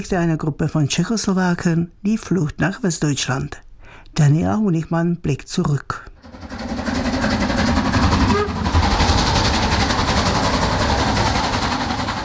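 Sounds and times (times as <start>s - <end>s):
speech: 0.0s - 3.6s, 4.2s - 6.6s
steam train running on rails: 6.2s - 12.2s.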